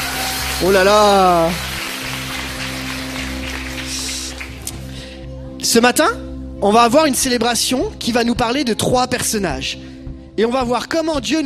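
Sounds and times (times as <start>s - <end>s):
audience applauding loudly: 0.0s - 4.9s
speech: 0.6s - 1.7s, 5.6s - 11.4s.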